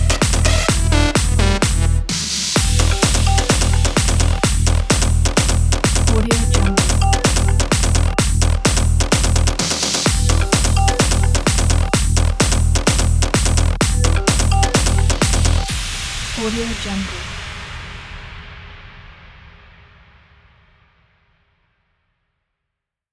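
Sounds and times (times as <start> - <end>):
progressive house music: 0.0 - 15.8.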